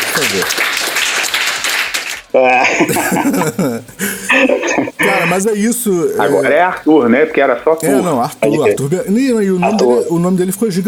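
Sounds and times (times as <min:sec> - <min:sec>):
applause sound effect: 0:00.0 - 0:02.4
speech: 0:00.2 - 0:00.8, 0:02.3 - 0:10.8
laughter: 0:02.4 - 0:05.7.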